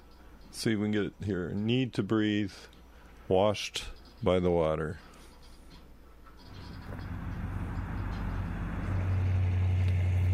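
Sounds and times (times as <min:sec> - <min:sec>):
speech: 0:00.6 - 0:05.1
old Oldsmobile car driving around: 0:06.5 - 0:10.3.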